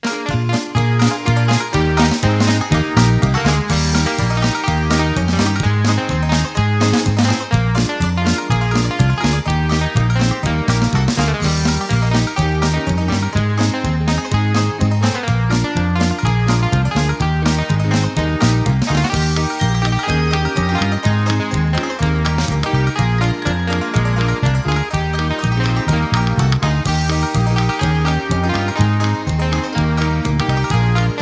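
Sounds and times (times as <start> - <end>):
instrumental music: 0.0 - 31.2.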